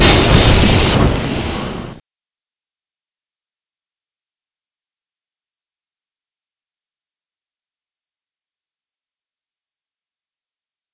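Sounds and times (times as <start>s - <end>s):
burning hell fire: 0.0s - 2.0s.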